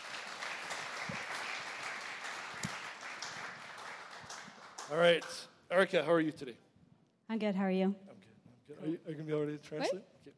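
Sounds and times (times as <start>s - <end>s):
audience at a bilingual life group gathering clapping: 0.0s - 5.5s
speech: 4.9s - 6.7s, 7.3s - 10.3s.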